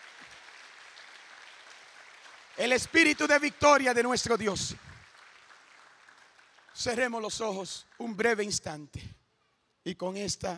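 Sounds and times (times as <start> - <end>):
audience applauding: 0.0 - 8.5
speech: 2.6 - 4.9, 6.8 - 9.2, 9.8 - 10.5.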